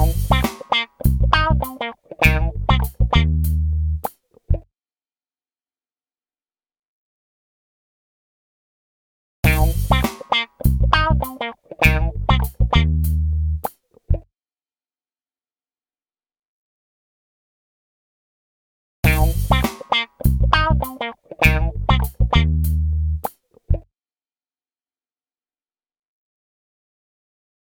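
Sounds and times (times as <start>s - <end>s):
funk improvisation: 0.0s - 4.2s, 9.4s - 13.8s, 19.0s - 23.4s.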